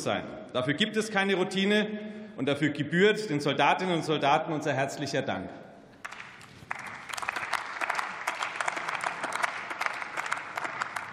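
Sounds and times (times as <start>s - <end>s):
speech: 0.0s - 5.6s
applause in parliament chamber: 6.0s - 11.1s.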